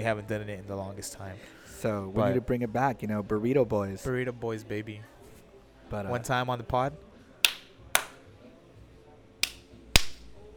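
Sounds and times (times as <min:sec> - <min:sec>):
speech: 0:00.0 - 0:05.2, 0:05.9 - 0:07.1
hand claps during a handshake routine: 0:07.4 - 0:08.2, 0:09.4 - 0:10.3.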